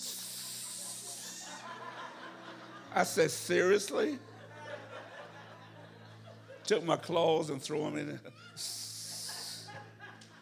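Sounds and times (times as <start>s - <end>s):
voice imitating disinfectant spray hiss: 0.0s - 1.6s, 8.6s - 9.8s
faint chuckle: 0.5s - 2.2s
speech: 3.0s - 4.3s, 6.7s - 8.8s.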